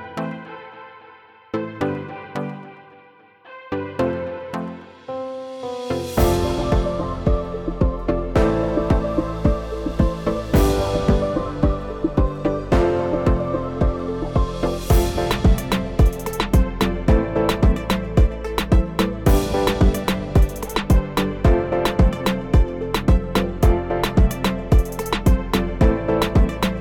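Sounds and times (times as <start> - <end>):
urban reggaeton sample kit: 6.2 - 26.7.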